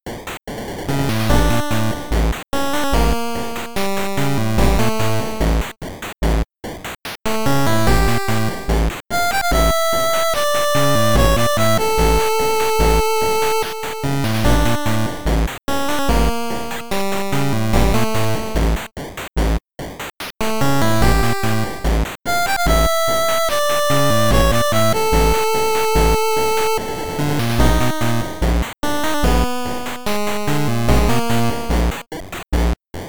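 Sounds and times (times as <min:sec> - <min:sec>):
8-bit volcano dungeon game music: 0:00.9 - 0:05.6, 0:07.3 - 0:18.8, 0:20.4 - 0:32.7.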